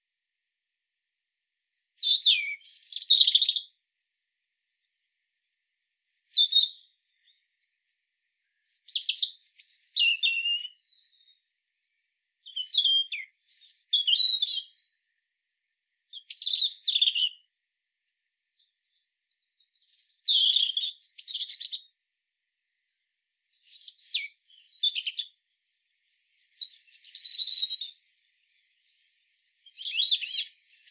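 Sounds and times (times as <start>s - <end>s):
European robin song: 1.6s - 3.8s, 6.0s - 15.2s, 15.9s - 17.6s, 18.5s - 22.0s, 22.8s - 30.8s.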